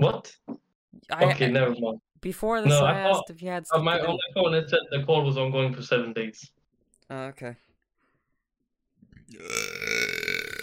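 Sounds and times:
speech: 0:01.1 - 0:07.7, 0:09.3 - 0:09.9
long loud raspy burp: 0:09.3 - 0:10.6.

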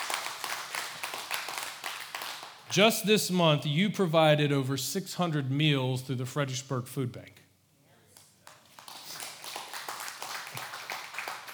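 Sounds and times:
audience applause: 0:00.0 - 0:02.6, 0:08.6 - 0:11.5
speech: 0:02.7 - 0:07.4.

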